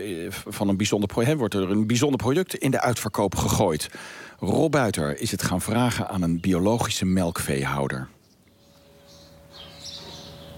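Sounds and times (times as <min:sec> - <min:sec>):
speech: 0:00.0 - 0:08.2
house sparrows chirping at an organic dairy farm near Schipluiden: 0:00.5 - 0:10.5
milking machine humming: 0:08.8 - 0:10.5.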